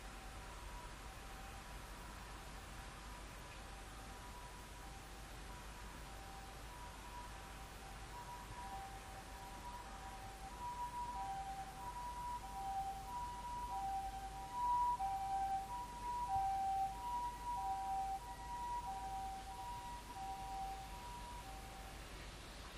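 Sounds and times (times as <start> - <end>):
siren: 0.1 - 2.9, 3.7 - 22.2.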